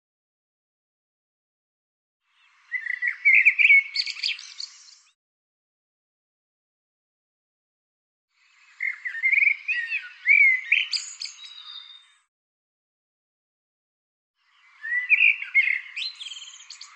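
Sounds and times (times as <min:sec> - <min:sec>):
bird twittering with sweeping notes: 0:02.7 - 0:05.1, 0:08.8 - 0:12.2, 0:14.6 - 0:16.9.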